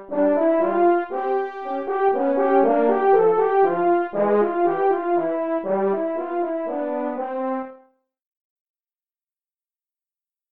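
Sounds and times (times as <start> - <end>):
French horn duet playing a grand waltz: 0.0 - 7.9.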